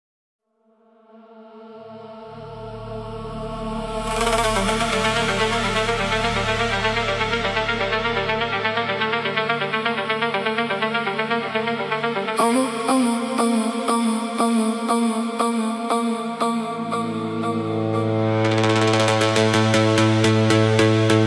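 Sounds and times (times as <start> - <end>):
remix music: 2.5 - 21.2.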